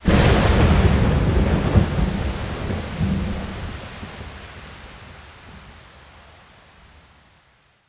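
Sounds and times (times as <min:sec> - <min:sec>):
lightning: 0:00.0 - 0:05.0.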